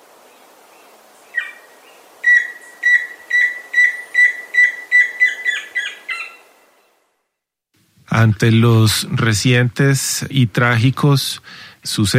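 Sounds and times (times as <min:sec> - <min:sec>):
tororo and chusquero bird trilling: 0:01.3 - 0:06.6
speech: 0:08.2 - 0:12.1.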